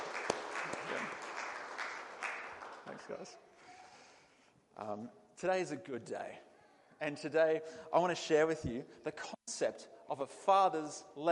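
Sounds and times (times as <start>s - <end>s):
audience round of applause for a couple returning with a new baby: 0.0s - 3.3s
speech: 3.0s - 3.6s, 4.8s - 11.3s.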